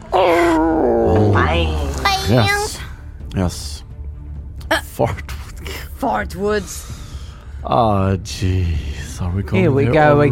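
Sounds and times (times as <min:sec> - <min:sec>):
person howling like a wolf: 0:00.0 - 0:02.3
speech: 0:01.6 - 0:02.6, 0:03.4 - 0:03.8, 0:05.0 - 0:05.3, 0:06.0 - 0:07.0, 0:07.6 - 0:10.3.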